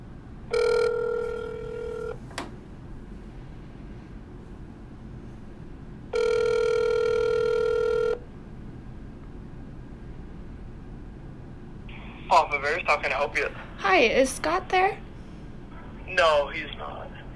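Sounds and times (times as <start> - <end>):
telephone ringing on the line: 0.5 - 2.2, 6.1 - 8.2
speech: 12.6 - 15.0, 16.1 - 16.8.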